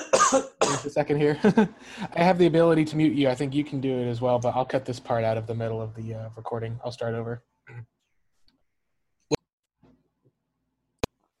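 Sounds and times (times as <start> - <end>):
person coughing: 0.0 - 1.0
speech: 0.1 - 7.9.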